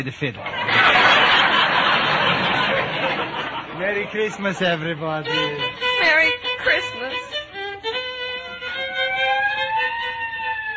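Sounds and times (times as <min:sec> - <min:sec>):
speech: 0:00.0 - 0:01.0, 0:03.8 - 0:07.0
laughter: 0:00.4 - 0:05.8
police squad car siren wailing: 0:07.8 - 0:10.7.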